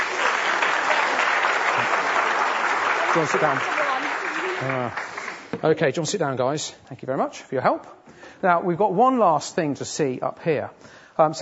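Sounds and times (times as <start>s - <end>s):
audience clapping for the winning team of a game: 0.0s - 6.0s
speech: 3.1s - 3.8s, 4.6s - 11.3s.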